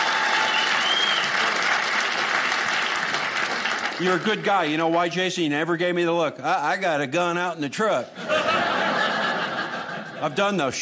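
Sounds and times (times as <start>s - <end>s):
crowd applauding: 0.0s - 5.4s
speech: 4.0s - 8.8s, 10.2s - 10.8s
laughter: 8.1s - 10.6s.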